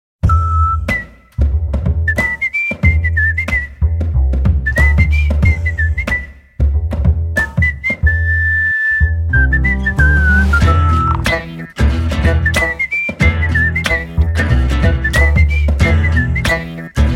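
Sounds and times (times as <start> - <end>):
whistle: 0.2 - 4.0, 4.6 - 6.5, 7.4 - 17.0.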